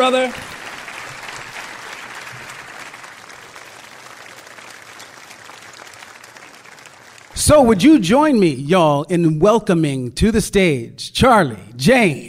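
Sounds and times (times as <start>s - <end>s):
speech: 0.0s - 0.6s, 7.4s - 12.2s
audience applause at a live storytelling event: 0.0s - 7.4s.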